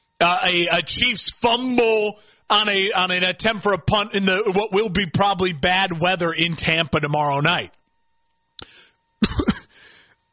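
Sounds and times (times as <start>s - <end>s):
speech: 0.2s - 7.8s
wheezy breath: 8.6s - 9.0s, 9.7s - 10.2s
man coughing while choking on his own saliva: 9.2s - 10.3s.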